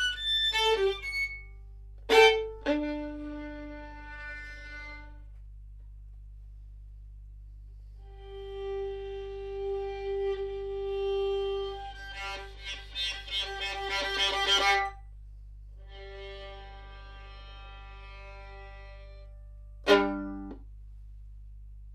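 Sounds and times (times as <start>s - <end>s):
violin: 0.0s - 5.4s, 8.0s - 15.0s, 15.8s - 20.6s.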